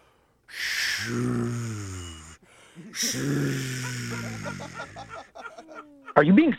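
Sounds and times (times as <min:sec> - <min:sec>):
person's voice imitating an ocean sound: 0:00.5 - 0:02.4, 0:03.0 - 0:05.2
speech: 0:01.0 - 0:01.5, 0:03.0 - 0:06.5
laughter: 0:02.8 - 0:06.3.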